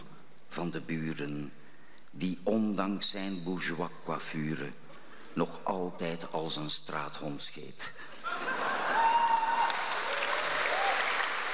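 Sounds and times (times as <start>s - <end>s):
speech: 0.6s - 8.2s
audience applause after a poetry reading: 8.7s - 11.5s.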